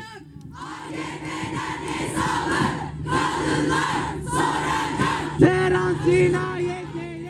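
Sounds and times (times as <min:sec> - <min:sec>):
person shouting: 0:00.0 - 0:00.3
protest crowd chanting in Istanbul: 0:00.5 - 0:07.2.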